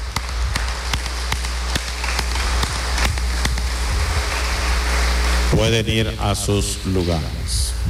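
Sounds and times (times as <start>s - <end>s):
audience applause: 0.2s - 5.5s
speech: 5.5s - 7.8s.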